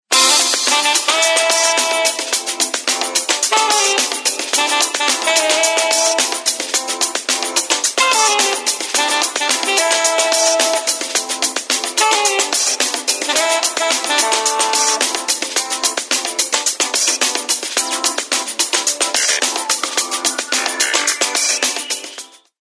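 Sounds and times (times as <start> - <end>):
jazz music: 0.1 - 22.6.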